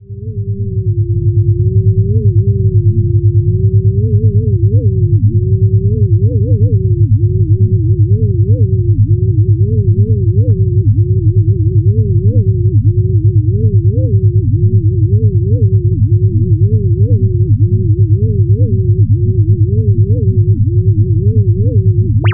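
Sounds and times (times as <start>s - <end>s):
simple sine tone: 0.0s - 22.3s.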